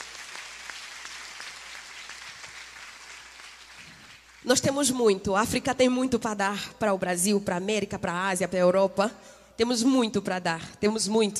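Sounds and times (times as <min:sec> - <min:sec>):
crowd applauding: 0:00.0 - 0:04.5
speech: 0:04.4 - 0:11.3.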